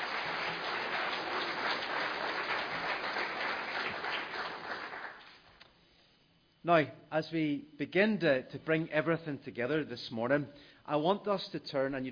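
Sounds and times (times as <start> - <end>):
audience applause: 0.0 - 5.4
speech: 6.6 - 12.0.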